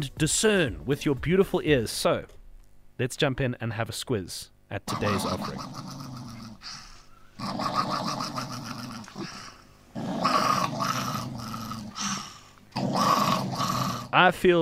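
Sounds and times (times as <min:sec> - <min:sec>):
speech: 0:00.0 - 0:02.4, 0:03.0 - 0:06.0, 0:14.1 - 0:14.6
person growling at the fridge: 0:04.9 - 0:14.2.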